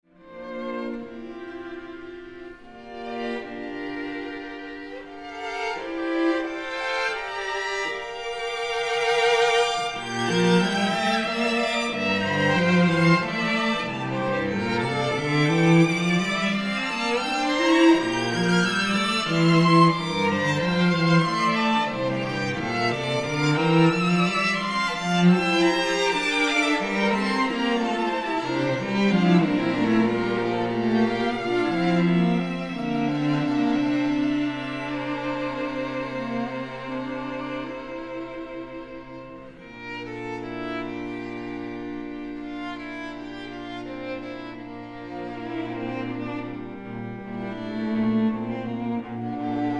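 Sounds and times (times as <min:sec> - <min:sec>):
gentle waltz: 0:00.2 - 0:49.7.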